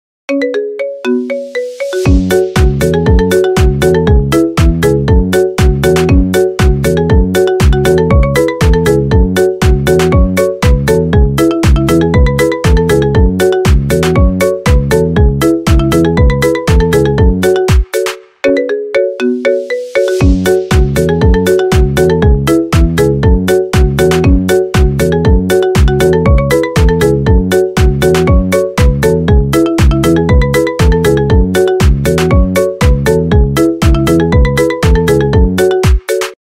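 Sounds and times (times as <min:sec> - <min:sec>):
polka played on marimba: 0:00.3 - 0:36.4.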